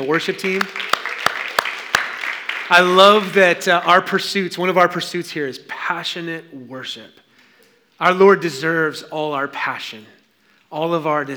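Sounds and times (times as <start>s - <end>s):
speech: 0.0s - 0.9s, 2.7s - 7.2s, 8.0s - 11.3s
audience clapping: 0.0s - 3.8s.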